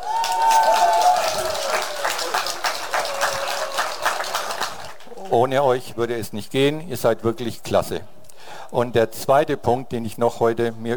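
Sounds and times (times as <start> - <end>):
audience applause: 0.0 - 5.4
speech: 5.3 - 10.9.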